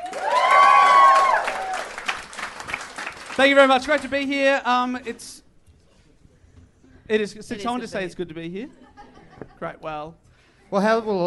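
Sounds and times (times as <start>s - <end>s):
audience applause: 0.0s - 4.3s
speech: 3.4s - 5.4s, 7.1s - 8.8s, 9.6s - 11.2s.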